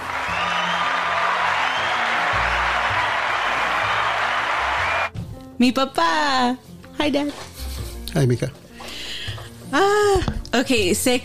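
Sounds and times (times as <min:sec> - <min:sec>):
audience applause: 0:00.0 - 0:05.1
speech: 0:05.6 - 0:07.5, 0:08.2 - 0:08.6, 0:09.7 - 0:11.2.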